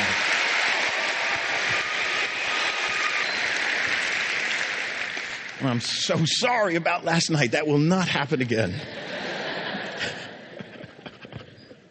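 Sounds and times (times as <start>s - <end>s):
audience applause: 0.0s - 6.7s
speech: 5.6s - 9.0s
laughter: 8.5s - 11.9s.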